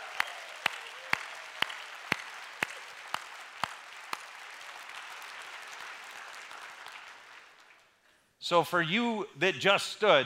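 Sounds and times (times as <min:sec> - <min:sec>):
large indoor audience applauding: 0:00.0 - 0:08.0
rhythmic clapping: 0:00.0 - 0:08.0
speech: 0:08.4 - 0:10.2.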